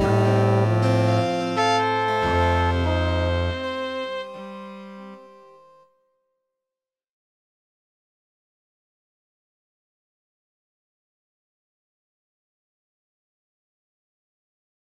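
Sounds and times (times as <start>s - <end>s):
fractal music chord progressions in just intonation Dorian mode: 0.0s - 5.8s.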